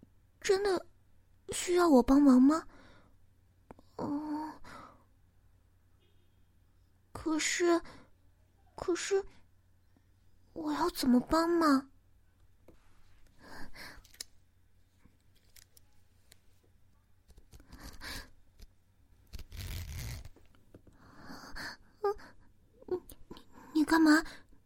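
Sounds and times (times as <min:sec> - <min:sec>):
speech: 0:00.4 - 0:00.9, 0:01.5 - 0:02.8, 0:07.3 - 0:08.0, 0:08.8 - 0:09.4, 0:10.6 - 0:11.9, 0:24.0 - 0:24.4
zipper being pulled: 0:19.3 - 0:20.4.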